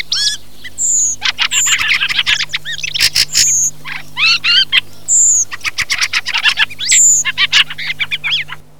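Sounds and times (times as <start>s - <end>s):
Cesena thrush call: 0.0s - 8.7s.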